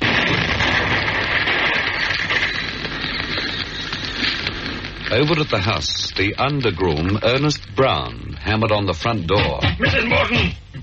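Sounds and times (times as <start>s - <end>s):
car exploding with a roar: 0.0s - 7.0s
speech: 5.1s - 10.8s.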